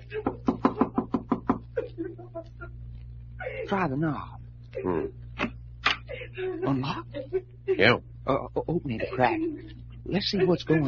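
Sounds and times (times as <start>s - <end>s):
low steady hum: 0.0s - 10.8s
sharp raps on a door: 0.3s - 1.6s
speech: 3.7s - 5.2s, 6.4s - 10.8s.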